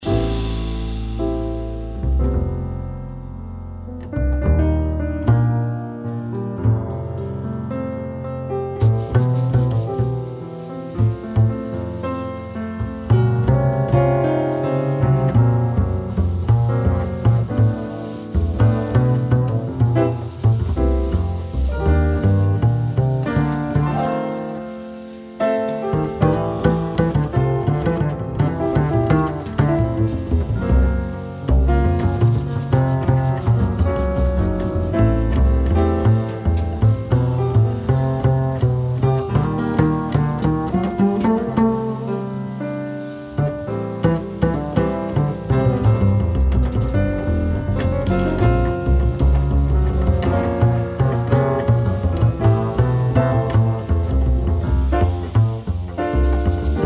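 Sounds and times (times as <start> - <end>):
bass solo: 0.0 - 24.2, 25.8 - 42.4, 43.1 - 56.8.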